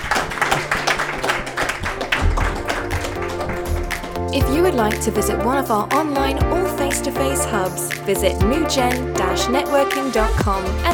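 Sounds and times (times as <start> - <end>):
applause: 0.0 - 4.2
speech: 4.4 - 10.9.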